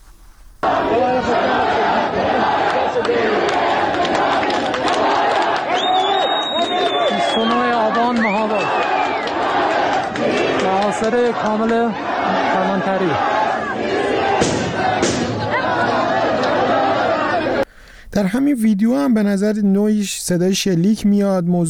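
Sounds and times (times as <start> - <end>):
large crowd shouting and calling out: 0.6 - 17.6
speech: 11.0 - 14.0, 18.2 - 21.6.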